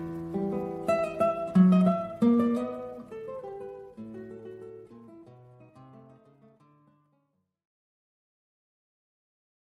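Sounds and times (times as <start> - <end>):
milonga music: 0.0 - 5.8.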